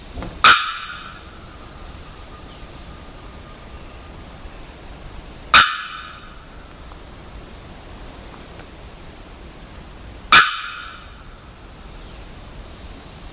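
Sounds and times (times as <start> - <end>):
bearded bellbird loud metallic bocks: 0.4 - 1.9, 5.5 - 6.6, 10.3 - 11.4.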